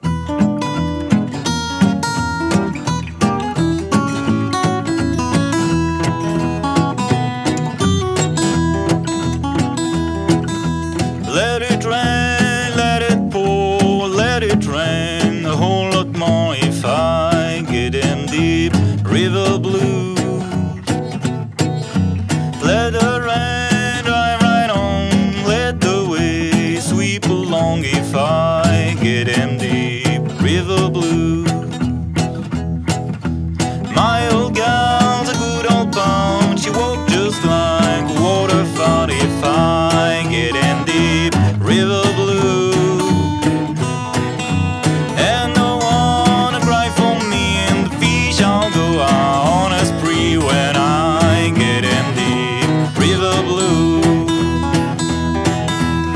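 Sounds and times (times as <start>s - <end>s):
blues music: 0.0s - 56.1s.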